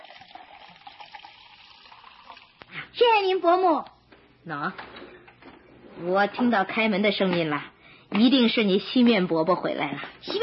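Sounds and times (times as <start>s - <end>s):
honey tea pouring into a cup: 0.0s - 2.7s
speech: 3.0s - 4.9s, 6.0s - 10.4s.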